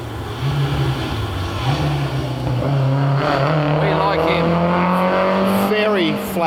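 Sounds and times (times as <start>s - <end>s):
Ford Escort BDA rally car driving past fast: 0.4s - 6.4s.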